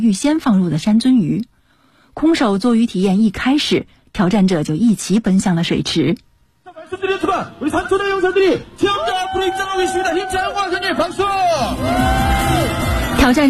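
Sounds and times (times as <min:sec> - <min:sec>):
speech: 0:00.0 - 0:01.5, 0:02.2 - 0:06.3, 0:06.9 - 0:12.3, 0:13.2 - 0:13.4
crowd cheering loudly: 0:08.8 - 0:13.4.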